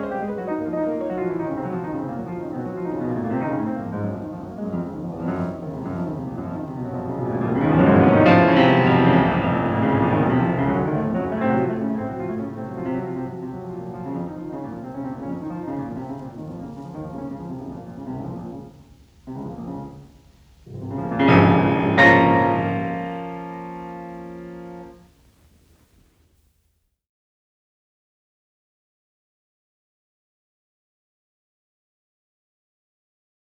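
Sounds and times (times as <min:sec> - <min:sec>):
piano sonata: 0:00.0 - 0:25.9.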